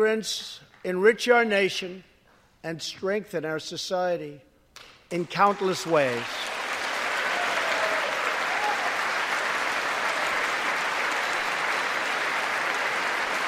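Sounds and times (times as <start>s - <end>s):
speech: 0.0s - 6.6s
audience clapping: 4.8s - 13.4s.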